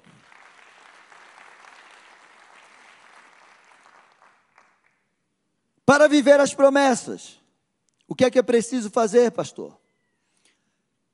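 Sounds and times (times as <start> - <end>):
audience applauding: 0.0 - 5.1
speech: 5.9 - 7.4, 8.1 - 9.8.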